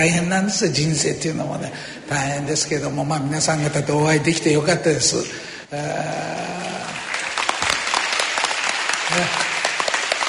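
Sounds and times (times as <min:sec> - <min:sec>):
speech: 0:00.0 - 0:07.0, 0:09.1 - 0:09.5
audience applause: 0:06.0 - 0:10.2.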